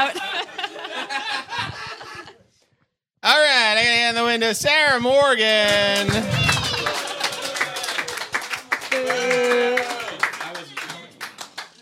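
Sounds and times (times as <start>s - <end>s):
laughter: 0.0s - 2.6s, 5.8s - 8.3s, 8.9s - 10.6s
speech: 4.1s - 6.6s
audience clapping: 5.4s - 11.8s
audience booing: 5.7s - 10.4s.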